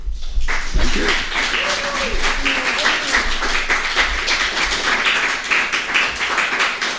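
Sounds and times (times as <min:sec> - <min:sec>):
audience applauding: 0:00.4 - 0:06.9
faint voices murmuring: 0:00.7 - 0:04.2.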